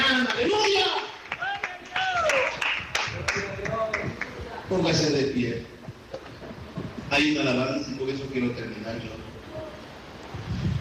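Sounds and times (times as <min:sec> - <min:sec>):
crowd applauding: 0:00.0 - 0:04.5
speech: 0:04.7 - 0:05.8, 0:07.1 - 0:09.3.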